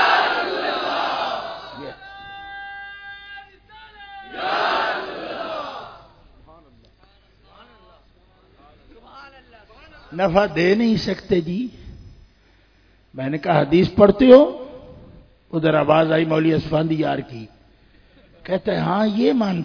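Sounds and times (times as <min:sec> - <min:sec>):
large crowd chanting a religious slogan: 0:00.0 - 0:01.9, 0:04.3 - 0:06.2
single man's drawn-out call: 0:01.7 - 0:04.4
speech: 0:10.2 - 0:11.8, 0:13.2 - 0:14.6, 0:15.5 - 0:17.6, 0:18.4 - 0:19.6.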